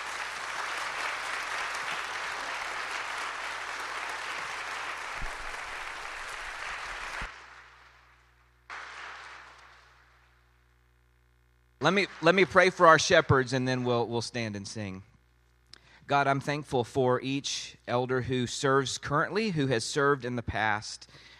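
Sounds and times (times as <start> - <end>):
crowd applause: 0.0 - 10.3, 11.8 - 13.5
speech: 11.8 - 15.1, 16.1 - 21.3.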